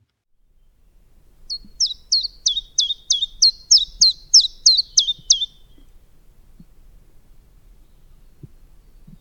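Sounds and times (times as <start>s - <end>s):
common chiffchaff singing: 1.3s - 5.9s.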